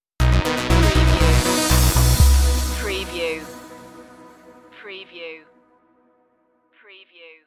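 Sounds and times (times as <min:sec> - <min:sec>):
musical flourish stinger: 0:00.3 - 0:04.7.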